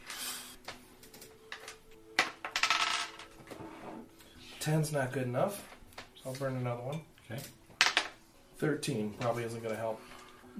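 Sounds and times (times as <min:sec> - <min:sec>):
dice rolling and clattering across a surface: 0:02.2 - 0:03.3
speech: 0:04.6 - 0:07.6, 0:08.6 - 0:10.5.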